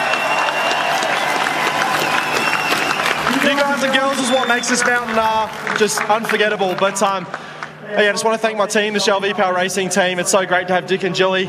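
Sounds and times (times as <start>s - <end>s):
crowd applause: 0.0s - 7.8s
speech: 3.5s - 11.4s.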